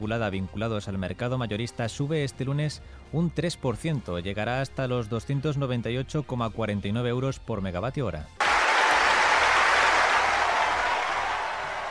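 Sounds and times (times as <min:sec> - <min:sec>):
speech: 0:00.0 - 0:08.4
ovation for Novak Djokovic after winning at Wimbledon: 0:08.4 - 0:11.8.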